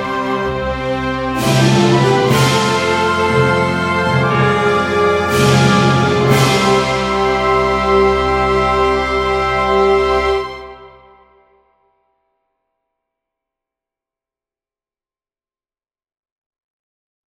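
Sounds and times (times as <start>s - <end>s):
anthem music: 0.0s - 11.5s.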